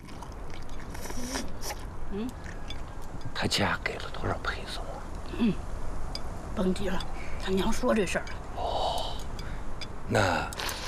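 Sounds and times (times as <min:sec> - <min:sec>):
person chewing dalu noodles: 0:00.0 - 0:03.2
noisy background: 0:00.0 - 0:10.8
speech: 0:02.1 - 0:02.5, 0:03.4 - 0:05.7, 0:06.6 - 0:08.4, 0:10.1 - 0:10.6.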